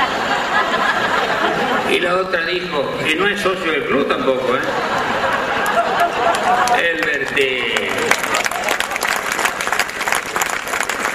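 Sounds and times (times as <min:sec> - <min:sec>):
laughter: 0:00.0 - 0:02.2, 0:04.2 - 0:09.3
speech: 0:02.1 - 0:05.4, 0:06.5 - 0:08.4
audience applause: 0:04.6 - 0:11.1.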